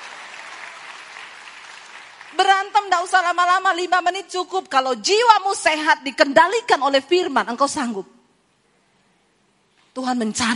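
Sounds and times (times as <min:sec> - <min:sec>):
audience applause: 0:00.0 - 0:02.6
speech: 0:02.3 - 0:08.2, 0:10.0 - 0:10.5.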